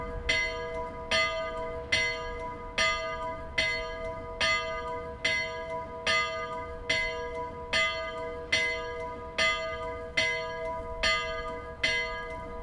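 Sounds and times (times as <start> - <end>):
church bell of St-Nikolaus in Willisau: 0.0 - 12.6.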